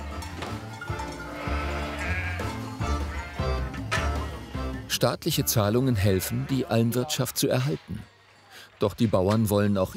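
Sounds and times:
sheep bleating in a stable: 1.0 - 4.7, 5.9 - 7.7
speech: 4.9 - 8.1, 8.8 - 9.9.

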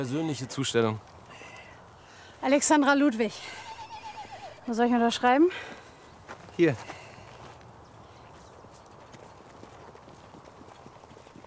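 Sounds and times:
speech: 0.0 - 1.2, 2.4 - 3.6, 4.7 - 5.8, 6.6 - 7.0
sore racehorse hooves trotting on a hard track: 8.3 - 11.4.

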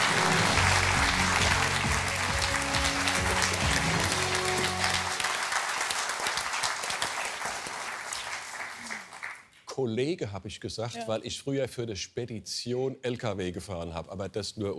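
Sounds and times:
audience applause: 0.0 - 9.5
speech: 9.8 - 14.7.

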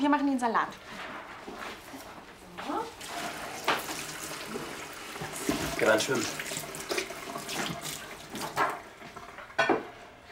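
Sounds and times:
speech: 0.0 - 2.0, 5.8 - 6.5
running tap water while salad is washed in a kitchen: 2.8 - 10.3.

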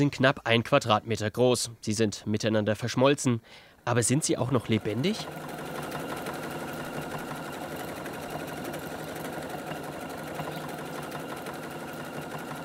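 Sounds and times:
speech: 0.0 - 5.6
sewing machine running: 4.2 - 12.6.

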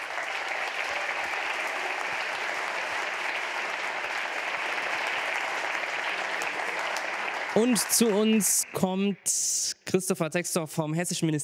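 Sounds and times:
audience applause: 0.0 - 9.0
speech: 7.6 - 11.4.

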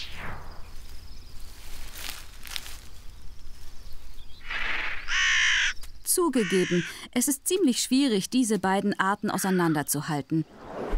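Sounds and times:
crows cawing: 4.5 - 7.1
speech: 6.1 - 10.7.

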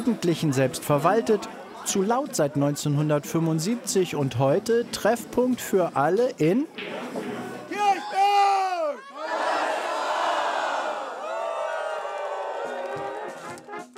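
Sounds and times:
speech: 0.0 - 7.1
packed football stadium crowd roaring: 6.8 - 13.8.

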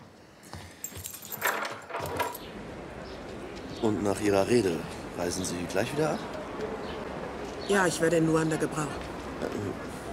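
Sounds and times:
keys jangling in a lock while locking a door: 0.8 - 2.5
speech: 3.8 - 6.8, 7.7 - 9.9.

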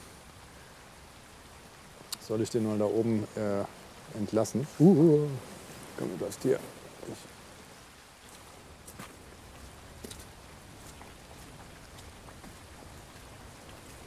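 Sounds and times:
rain falling: 0.0 - 14.0
speech: 2.3 - 7.4.

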